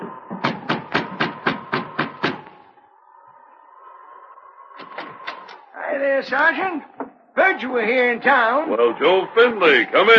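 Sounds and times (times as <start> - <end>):
knocking on a cabin door: 0.3 - 2.4
speech: 6.0 - 10.1.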